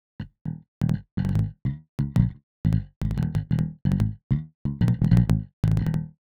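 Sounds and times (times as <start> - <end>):
bass guitar with less sustain: 0.2 - 6.2.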